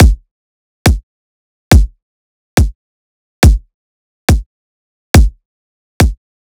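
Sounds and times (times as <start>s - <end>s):
riddim kick drum loop: 0.0s - 0.2s, 1.7s - 2.0s, 3.4s - 3.7s, 5.2s - 5.4s, 6.0s - 6.2s.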